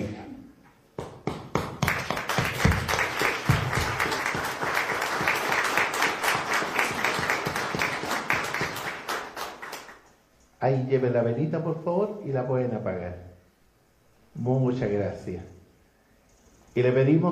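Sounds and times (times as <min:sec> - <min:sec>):
crowd applauding: 0:01.7 - 0:10.0
speech: 0:10.6 - 0:13.3, 0:14.4 - 0:15.5, 0:16.8 - 0:17.3.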